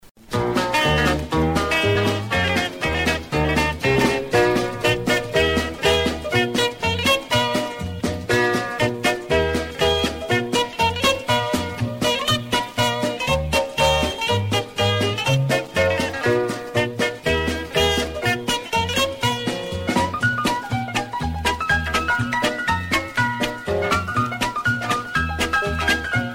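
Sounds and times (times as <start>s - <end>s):
guitar: 0.2s - 26.3s.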